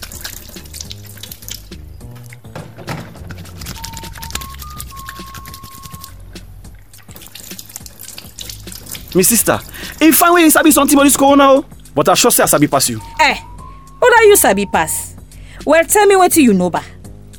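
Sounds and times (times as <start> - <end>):
water pouring and splashing as hands are washed with soap from a bucket: 0.0 - 10.8, 12.2 - 13.0
music: 0.0 - 17.3
speech: 9.2 - 15.0, 15.7 - 16.9.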